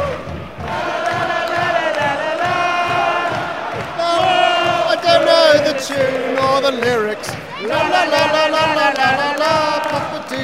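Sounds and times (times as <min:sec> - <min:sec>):
crowd clapping: 0:00.0 - 0:10.4
speech: 0:06.7 - 0:10.4.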